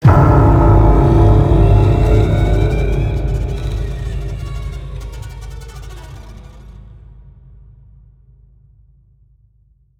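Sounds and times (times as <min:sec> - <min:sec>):
horror stinger: 0:00.0 - 0:07.3.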